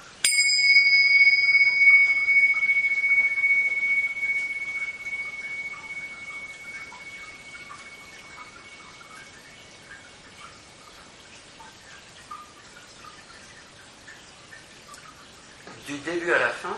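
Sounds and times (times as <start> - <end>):
gong being struck: 0.2 - 10.0
speech: 16.2 - 16.7.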